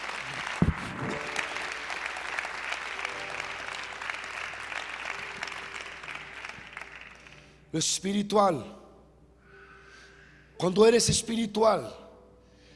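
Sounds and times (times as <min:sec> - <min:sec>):
audience applause: 0:00.0 - 0:07.5
speech: 0:07.7 - 0:08.8, 0:10.6 - 0:12.0.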